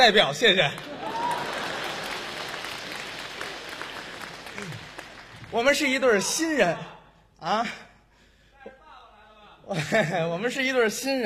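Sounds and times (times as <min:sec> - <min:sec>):
speech: 0:00.0 - 0:00.9, 0:05.5 - 0:07.8, 0:09.7 - 0:11.2
audience applause: 0:00.6 - 0:06.0.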